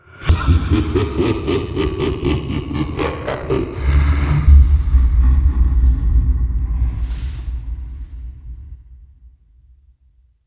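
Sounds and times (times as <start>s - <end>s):
person laughing: 0.2s - 7.9s.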